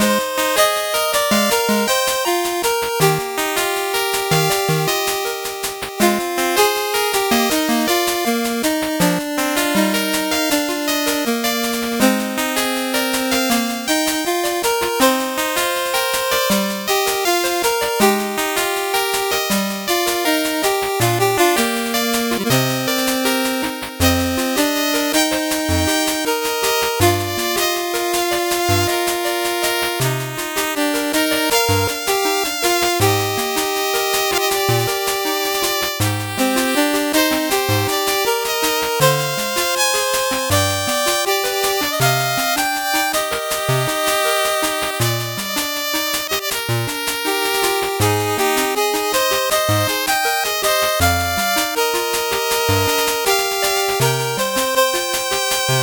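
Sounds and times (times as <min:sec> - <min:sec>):
slow 8-bit background music: 0:00.0 - 0:55.8.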